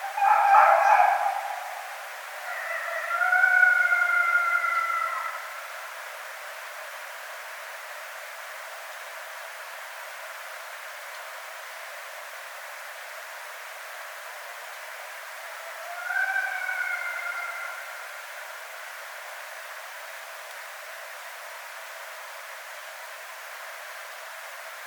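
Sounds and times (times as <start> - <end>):
red fox calling: 0.0 - 5.5, 15.6 - 18.0.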